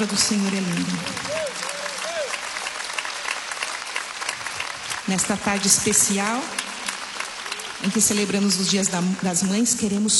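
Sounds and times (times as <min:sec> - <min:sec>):
speech: 0:00.0 - 0:01.6, 0:05.1 - 0:06.6, 0:07.8 - 0:10.1
audience applause: 0:00.0 - 0:10.1.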